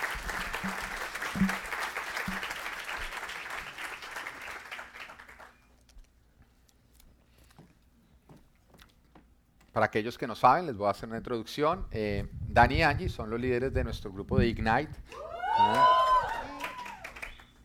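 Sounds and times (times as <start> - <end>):
audience applause: 0.0 - 5.6, 15.2 - 17.6
speech: 9.8 - 16.0.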